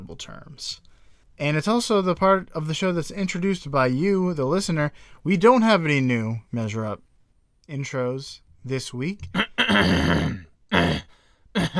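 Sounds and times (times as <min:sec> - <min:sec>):
speech: 0:00.1 - 0:07.1, 0:07.7 - 0:11.7
throat clearing to dislodge something stuck: 0:09.3 - 0:11.7.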